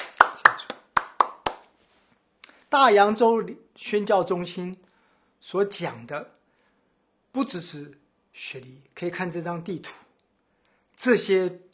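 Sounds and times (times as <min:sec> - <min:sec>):
church congregation clapping hands in unison: 0:00.0 - 0:01.7
speech: 0:02.7 - 0:04.8, 0:05.4 - 0:06.4, 0:07.4 - 0:10.0, 0:11.0 - 0:11.7.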